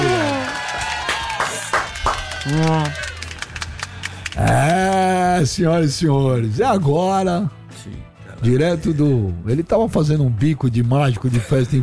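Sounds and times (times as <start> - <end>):
applause and clapping: 0.0 - 5.2
speech: 2.4 - 3.1, 4.4 - 11.8.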